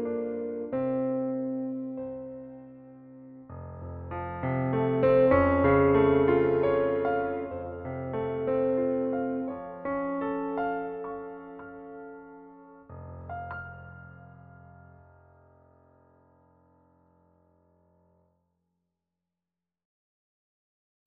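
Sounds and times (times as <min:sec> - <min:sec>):
CFX grand piano: 0:00.0 - 0:18.2.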